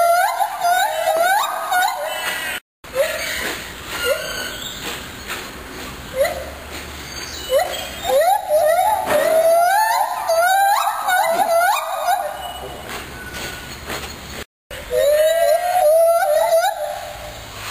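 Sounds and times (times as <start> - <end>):
gibbon singing: 0.0 - 4.6, 7.3 - 13.4, 14.8 - 17.5.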